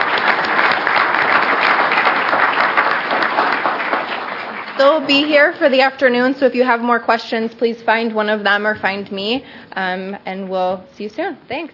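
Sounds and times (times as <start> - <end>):
audience applause: 0.0 - 5.6
speech: 4.8 - 11.7.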